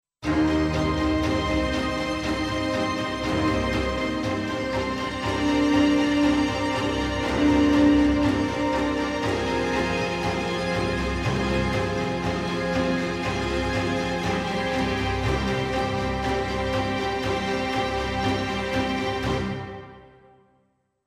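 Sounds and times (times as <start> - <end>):
winter-themed string music: 0.2 - 20.4.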